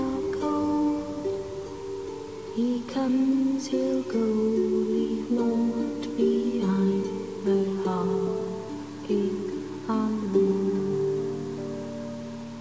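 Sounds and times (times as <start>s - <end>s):
lullaby: 0.0s - 12.6s.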